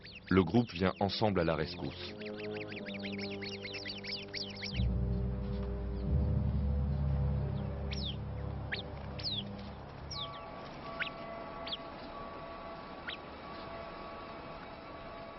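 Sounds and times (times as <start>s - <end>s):
sentinel bird alarm call chirps at a viper: 0.0s - 6.2s, 6.8s - 14.9s
speech: 0.3s - 2.2s
steady low hum: 1.4s - 15.3s.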